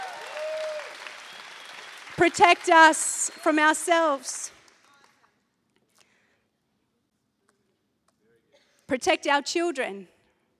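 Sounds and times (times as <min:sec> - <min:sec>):
crowd clapping: 0:00.0 - 0:05.4
speech: 0:02.2 - 0:04.6, 0:08.9 - 0:10.1.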